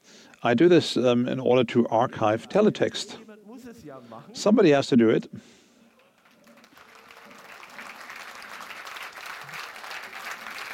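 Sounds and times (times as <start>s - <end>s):
speech: 0.4s - 3.2s, 3.8s - 5.6s
audience clapping: 5.9s - 10.7s.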